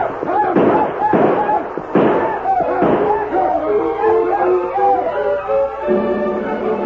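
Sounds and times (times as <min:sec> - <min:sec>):
gunshots: 0:00.0 - 0:04.4
people yelling: 0:00.0 - 0:06.7.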